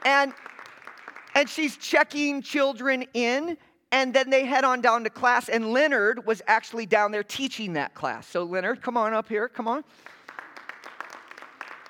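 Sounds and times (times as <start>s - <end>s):
speech: 0.0s - 0.5s, 1.4s - 10.2s
audience clapping: 0.0s - 1.6s, 10.0s - 11.8s.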